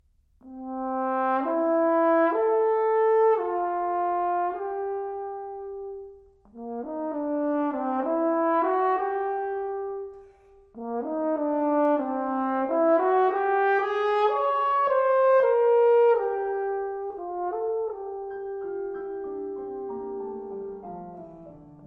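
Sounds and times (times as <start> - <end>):
horn and piano sonata: 0.4 - 21.8.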